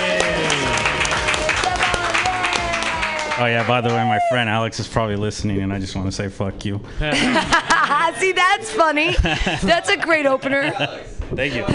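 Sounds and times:
group clapping: 0:00.0 - 0:04.5
speech: 0:03.4 - 0:11.7
laughter: 0:07.0 - 0:11.7.

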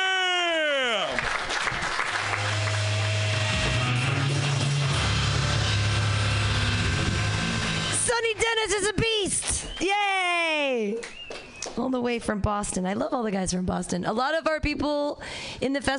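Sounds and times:
audience applause for the host at a comedy festival: 0:01.0 - 0:04.9
falling whine: 0:02.2 - 0:08.5
speech: 0:08.7 - 0:11.1, 0:11.8 - 0:15.9.

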